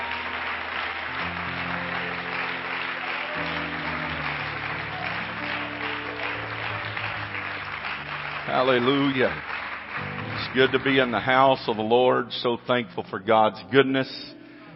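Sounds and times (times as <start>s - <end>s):
audience clapping in praise: 0.0s - 12.2s
speech: 8.5s - 9.6s, 10.5s - 14.4s.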